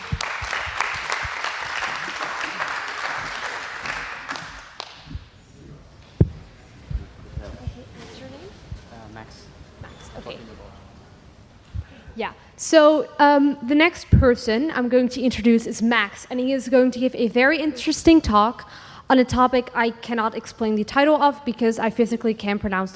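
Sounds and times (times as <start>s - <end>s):
audience applause: 0.0s - 5.2s
speech: 12.2s - 22.9s.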